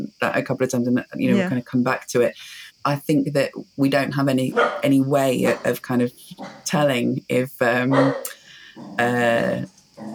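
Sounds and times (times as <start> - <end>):
speech: 0.2 - 8.2, 8.8 - 9.8
excited dog barking: 4.5 - 4.8, 7.9 - 9.0.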